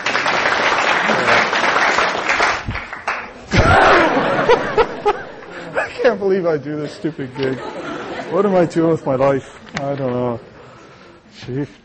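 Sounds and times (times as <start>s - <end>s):
round of applause: 0.0s - 5.8s
laughter: 3.5s - 9.4s
speech: 6.0s - 10.5s, 11.3s - 11.8s.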